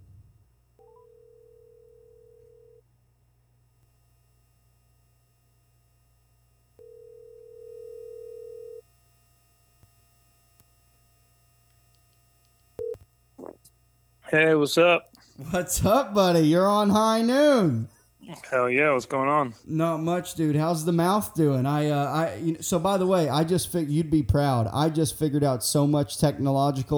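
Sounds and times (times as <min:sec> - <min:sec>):
ringback tone of an outgoing phone call to a co-host: 0:00.8 - 0:02.8, 0:06.8 - 0:08.8
speech: 0:14.3 - 0:26.9
laughter: 0:15.3 - 0:26.9.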